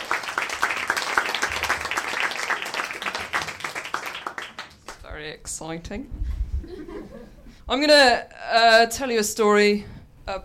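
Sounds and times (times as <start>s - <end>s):
audience applause welcoming storyteller: 0.0s - 5.0s
speech: 5.3s - 6.4s, 7.0s - 10.4s.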